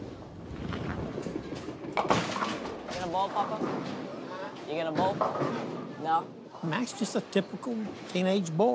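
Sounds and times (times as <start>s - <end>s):
bowling ball rolling down the lane at a bowling alley: 0.1s - 6.0s
speech: 3.2s - 4.0s, 4.7s - 8.7s.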